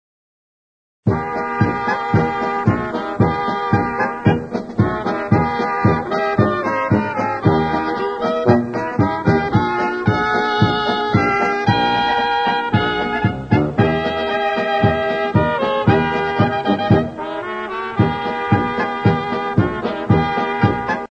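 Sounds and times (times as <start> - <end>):
polka music: 1.1 - 21.0.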